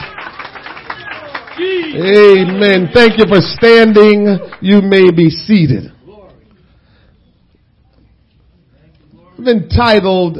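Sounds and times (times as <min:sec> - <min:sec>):
audience clapping hands: 0:00.0 - 0:05.2
speech: 0:01.6 - 0:06.0, 0:09.4 - 0:10.3.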